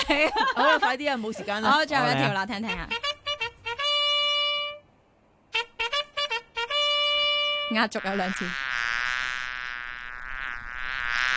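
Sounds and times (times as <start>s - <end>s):
laughter: 0.0s - 2.4s
speech: 0.1s - 3.1s, 7.7s - 8.6s
housefly buzzing: 2.7s - 4.8s, 5.5s - 11.3s.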